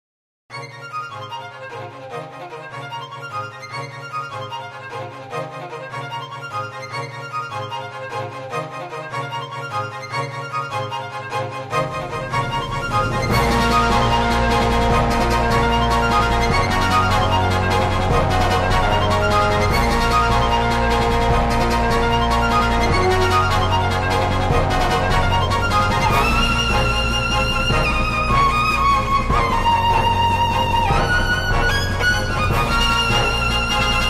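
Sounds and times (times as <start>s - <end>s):
orchestra arrangement: 1.1s - 34.0s.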